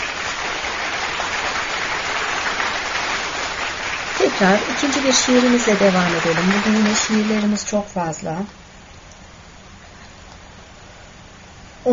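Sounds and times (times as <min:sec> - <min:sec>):
applause: 0:00.0 - 0:08.0
speech: 0:04.2 - 0:08.6.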